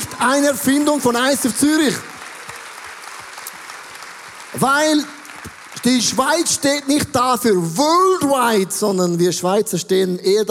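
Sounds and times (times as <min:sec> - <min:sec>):
audience applause: 0:00.0 - 0:07.6
speech: 0:00.2 - 0:02.1, 0:04.6 - 0:05.2, 0:05.8 - 0:10.4.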